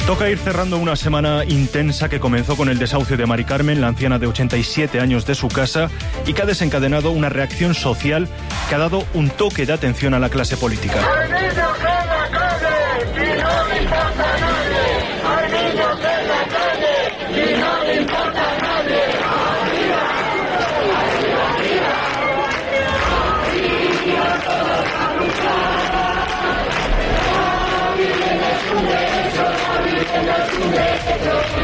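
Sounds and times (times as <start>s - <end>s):
speech: 0.1s - 12.4s
large protest crowd in the Puerta del Sol in Madrid: 10.9s - 31.6s.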